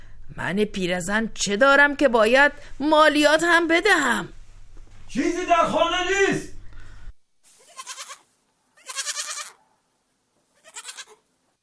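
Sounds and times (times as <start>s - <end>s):
speech: 0.3s - 4.4s, 5.1s - 6.5s
goat bleating in a drama scene: 7.6s - 9.6s, 10.6s - 11.2s.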